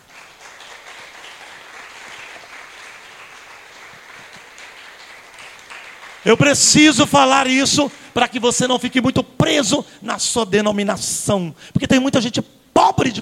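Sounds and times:
crowd applause: 0:00.0 - 0:06.8
speech: 0:06.2 - 0:13.2.

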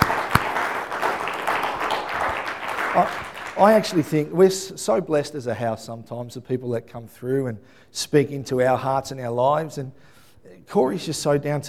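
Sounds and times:
audience applause: 0:00.0 - 0:04.3
speech: 0:02.9 - 0:11.6.

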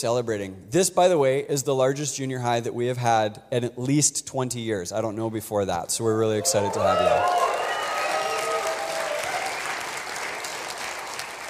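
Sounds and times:
speech: 0:00.0 - 0:07.6
faint voices and cheers: 0:06.2 - 0:09.8
audience clapping: 0:06.5 - 0:11.4.

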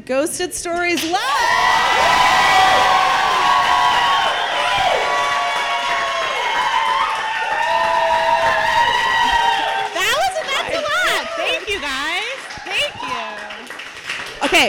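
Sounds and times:
speech: 0:00.0 - 0:02.2
shouted whoops: 0:01.1 - 0:11.8
live podcast show audience roaring: 0:01.2 - 0:13.6.

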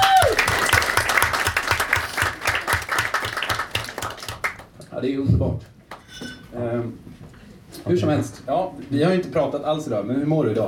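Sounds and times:
group of people applauding: 0:00.0 - 0:04.8
speech: 0:05.0 - 0:05.7, 0:06.5 - 0:07.2, 0:07.8 - 0:10.6.

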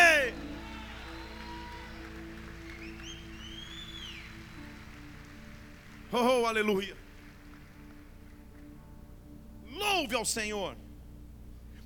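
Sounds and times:
audience applause: 0:00.0 - 0:08.4
speech: 0:06.1 - 0:07.0, 0:10.0 - 0:10.8.

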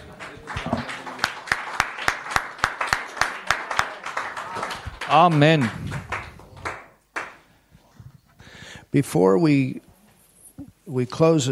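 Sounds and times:
murmur of voices: 0:00.0 - 0:07.0
audience rhythmic clapping in unison: 0:00.0 - 0:07.6
speech: 0:05.1 - 0:06.1, 0:08.9 - 0:09.9, 0:10.9 - 0:11.5.

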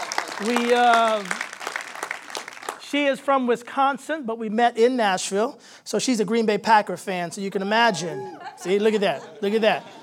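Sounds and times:
audience applause: 0:00.0 - 0:02.9
speech: 0:00.4 - 0:01.5, 0:02.9 - 0:10.0
laughter: 0:07.9 - 0:10.0.

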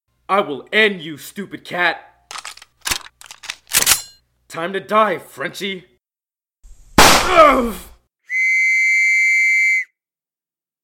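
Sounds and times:
speech: 0:00.3 - 0:02.1, 0:04.5 - 0:05.9, 0:07.3 - 0:07.9
gunshot: 0:07.0 - 0:07.7
steady high-pitched whistling tone: 0:08.3 - 0:10.0.

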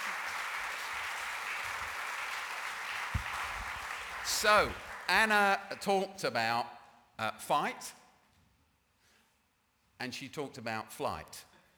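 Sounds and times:
audience applause: 0:00.0 - 0:05.3
low thump: 0:03.2 - 0:03.7
speech: 0:04.4 - 0:08.0, 0:10.0 - 0:11.5.

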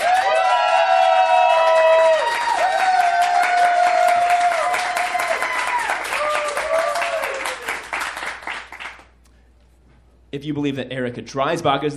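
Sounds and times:
shrill cheers and whoops: 0:00.0 - 0:07.9
crowd applause: 0:00.0 - 0:09.1
speech: 0:10.4 - 0:11.9.

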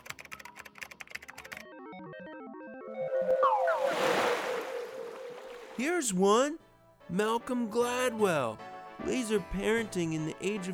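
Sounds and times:
computer keyboard keystrokes: 0:00.0 - 0:01.6
stepping electronic tones: 0:01.9 - 0:05.5
speech: 0:05.8 - 0:10.7.

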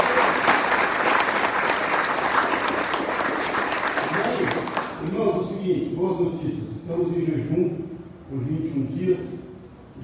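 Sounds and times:
audience applause: 0:00.0 - 0:05.0
speech: 0:06.1 - 0:09.3.

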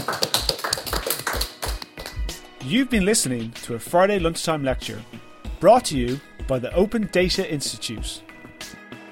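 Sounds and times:
group applause: 0:00.0 - 0:02.2
speech: 0:02.6 - 0:08.3.

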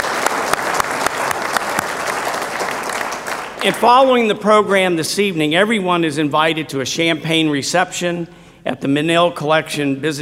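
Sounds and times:
crowd applause: 0:00.0 - 0:04.1
speech: 0:03.6 - 0:10.2.

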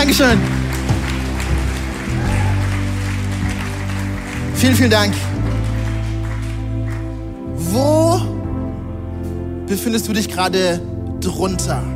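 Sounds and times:
crowd clapping: 0:00.0 - 0:07.5
low musical drone: 0:00.0 - 0:11.9
speech: 0:00.1 - 0:00.6, 0:04.6 - 0:05.3, 0:07.7 - 0:08.3, 0:09.7 - 0:11.9.

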